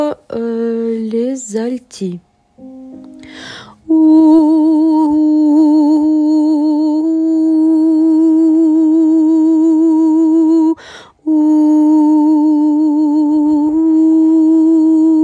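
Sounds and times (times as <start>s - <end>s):
Ukrainian lullaby: 0.2s - 15.2s.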